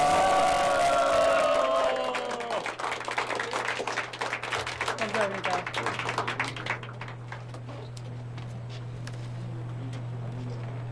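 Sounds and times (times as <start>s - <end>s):
crowd applauding and cheering: 0.0s - 7.6s.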